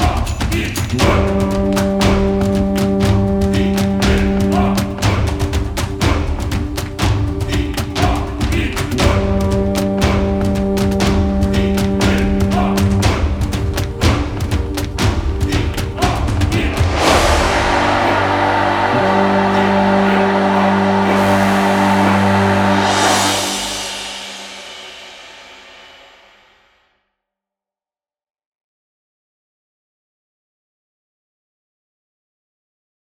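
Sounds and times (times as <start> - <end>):
tiki chant: 0.0 - 25.4.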